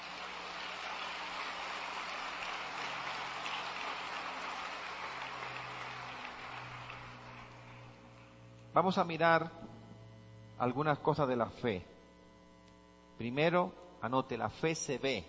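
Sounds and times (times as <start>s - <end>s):
applause: 0.0s - 8.4s
speech: 8.8s - 9.7s, 10.6s - 11.9s, 13.2s - 15.2s.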